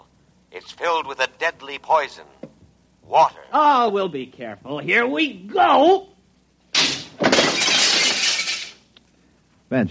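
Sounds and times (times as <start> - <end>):
speech: 0.8 - 2.4, 3.1 - 6.1
glass cooling tubes shattering: 6.7 - 8.8.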